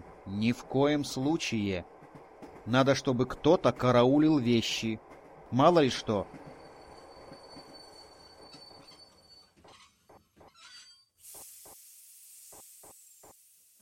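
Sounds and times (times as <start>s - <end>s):
train clunking as it stops: 0.0s - 11.0s
speech: 0.3s - 2.0s, 2.6s - 6.4s
train wheels clacking as it slows into the station at Voronezh: 0.6s - 9.3s.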